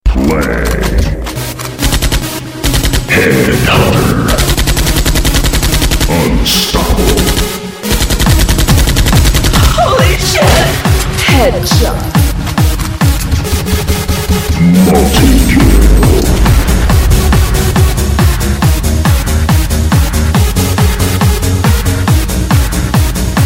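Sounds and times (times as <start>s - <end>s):
techno music: 0.1s - 23.4s.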